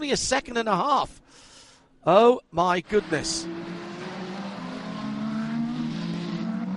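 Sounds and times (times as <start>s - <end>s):
speech: 0.0s - 3.6s
race cars battling on track: 2.7s - 6.7s.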